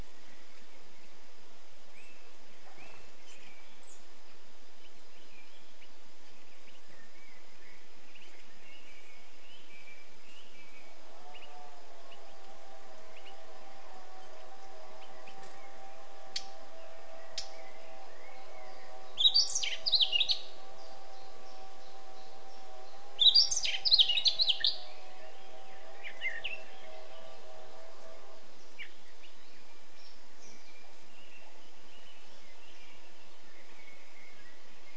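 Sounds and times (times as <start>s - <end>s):
low steady hum: 0.0s - 34.9s
faint thin chirps from other birds: 1.9s - 34.9s
Eurasian blackcap ticks and warbling song: 19.2s - 24.9s.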